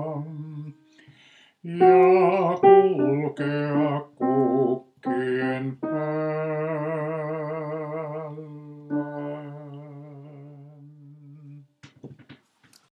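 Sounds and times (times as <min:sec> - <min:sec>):
male voices singing first bass part: 0:01.7 - 0:11.7.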